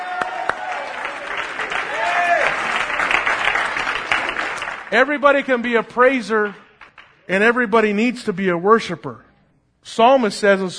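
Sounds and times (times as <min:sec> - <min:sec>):
people clapping hands: 0:00.0 - 0:07.5
speech: 0:04.9 - 0:06.6, 0:07.3 - 0:09.2, 0:09.8 - 0:10.7.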